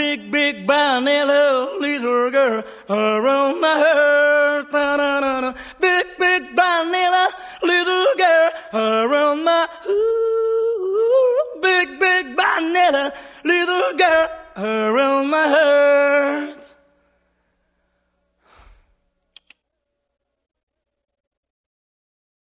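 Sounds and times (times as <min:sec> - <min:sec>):
a cappella singing: 0:00.0 - 0:16.9.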